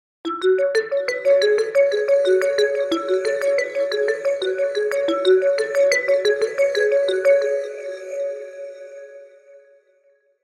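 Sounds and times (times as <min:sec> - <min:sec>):
vibraphone phrase: 0:00.3 - 0:07.6.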